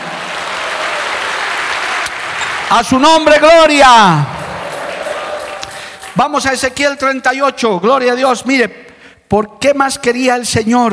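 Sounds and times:
audience applause: 0:00.0 - 0:06.4
speech: 0:02.7 - 0:04.4, 0:06.2 - 0:10.9.

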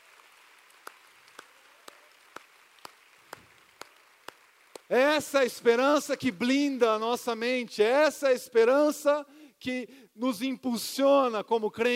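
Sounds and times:
audience clapping: 0:00.0 - 0:07.0
speech: 0:04.9 - 0:11.9.

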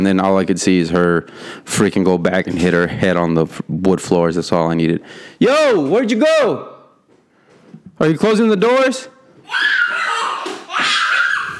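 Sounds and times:
speech: 0:00.0 - 0:06.7, 0:08.0 - 0:09.8
young girl screaming: 0:09.4 - 0:11.5.

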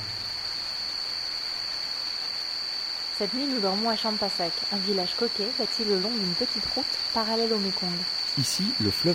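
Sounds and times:
speech: 0:03.2 - 0:09.1
heavy tropical rain shower during thunderstorm: 0:08.2 - 0:09.1.

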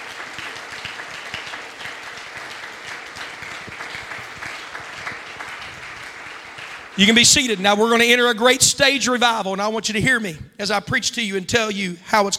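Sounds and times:
audience clapping hands: 0:00.0 - 0:08.6
speech: 0:07.0 - 0:12.3.

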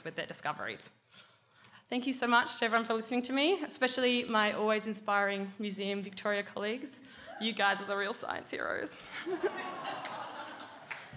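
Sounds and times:
speech: 0:00.0 - 0:01.3, 0:01.9 - 0:10.2
laughter: 0:09.0 - 0:11.1
audience applause: 0:09.8 - 0:11.1.

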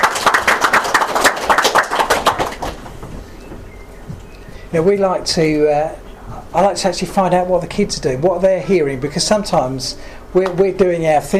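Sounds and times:
crowd applauding: 0:00.0 - 0:02.9
speech: 0:04.7 - 0:11.3.

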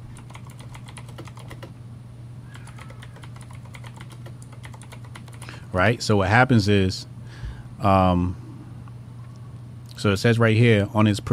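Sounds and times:
low steady hum: 0:00.0 - 0:11.3
typing on a computer keyboard: 0:00.1 - 0:01.7, 0:02.5 - 0:05.5
speech: 0:05.7 - 0:07.1, 0:07.8 - 0:08.4, 0:10.0 - 0:11.3.

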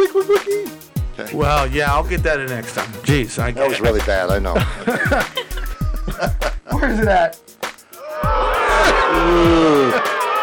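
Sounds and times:
speech: 0:00.2 - 0:05.4, 0:06.2 - 0:07.5, 0:09.1 - 0:10.1
laughter: 0:03.6 - 0:07.3, 0:08.6 - 0:10.4
crowd booing: 0:08.0 - 0:10.4.

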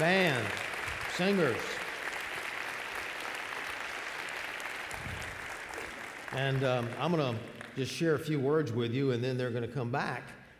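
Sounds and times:
speech: 0:00.0 - 0:00.6, 0:01.2 - 0:01.7, 0:06.3 - 0:10.4
crowd applauding for choir and band: 0:00.0 - 0:08.2.

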